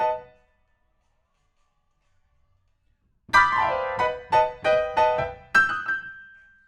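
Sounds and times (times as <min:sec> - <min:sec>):
rock and roll piano: 0:00.0 - 0:00.4, 0:03.3 - 0:06.6.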